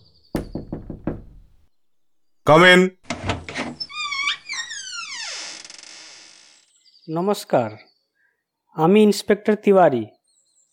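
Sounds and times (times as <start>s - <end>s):
hollow knocks on a door in a horror audio story: 0.4s - 1.7s
speech: 2.5s - 3.0s, 7.1s - 7.9s, 8.8s - 10.2s.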